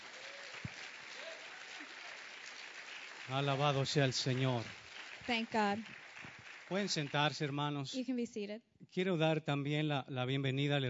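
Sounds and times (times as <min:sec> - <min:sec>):
church congregation clapping to honor its Hispanic members: 0:00.0 - 0:07.8
speech: 0:03.3 - 0:06.0, 0:06.7 - 0:10.8.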